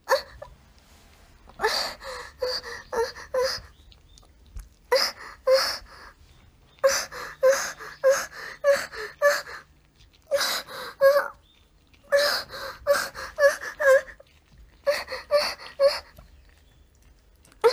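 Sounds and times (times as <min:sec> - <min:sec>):
woman moaning: 0:01.6 - 0:03.7, 0:06.8 - 0:09.6, 0:10.3 - 0:11.4, 0:12.1 - 0:14.2, 0:14.9 - 0:16.1.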